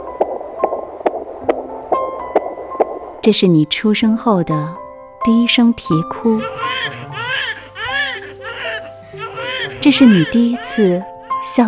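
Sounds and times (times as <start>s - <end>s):
fetal heartbeat in the mother's womb: 0.0s - 3.4s
speech: 3.2s - 7.0s, 9.8s - 11.6s.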